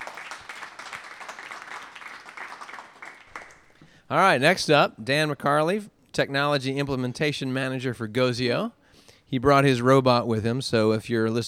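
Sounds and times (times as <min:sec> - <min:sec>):
audience applause: 0:00.0 - 0:03.8
speech: 0:04.1 - 0:11.4.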